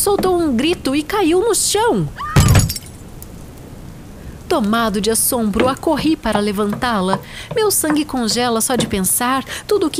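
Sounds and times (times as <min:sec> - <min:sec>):
speech: 0:00.0 - 0:02.3, 0:04.5 - 0:09.9
coffee pot smashing into pieces: 0:02.4 - 0:03.0
coffee pot shards scattering and tinkling: 0:02.4 - 0:03.1.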